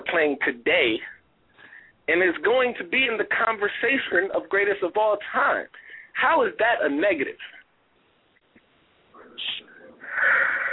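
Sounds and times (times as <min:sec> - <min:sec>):
speech: 0:00.1 - 0:01.2, 0:02.1 - 0:07.6
person yawning: 0:10.0 - 0:10.7.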